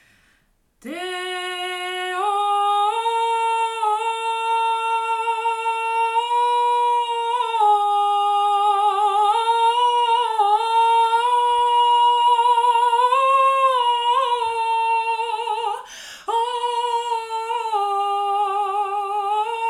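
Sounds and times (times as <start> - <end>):
chant melody: 0.8 - 19.6.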